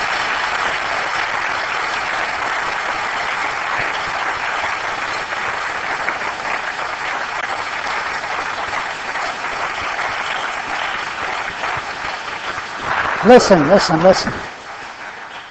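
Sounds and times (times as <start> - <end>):
audience applause for a professor at a lecture at the Perimeter Institute: 0.0 - 15.4
speech: 13.2 - 14.5.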